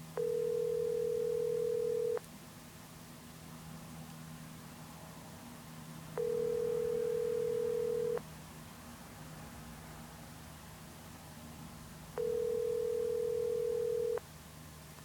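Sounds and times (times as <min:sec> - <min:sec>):
American phone ringback tone: 0:00.2 - 0:02.2, 0:06.2 - 0:08.2, 0:12.2 - 0:14.2.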